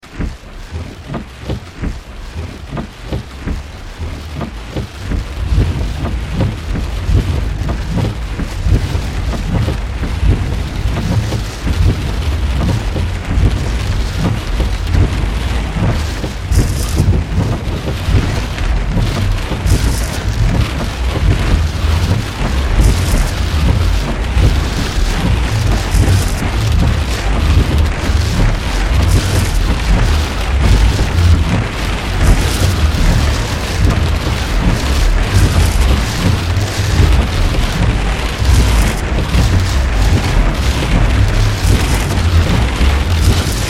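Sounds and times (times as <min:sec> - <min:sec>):
torrential rain: 0:00.0 - 0:43.6.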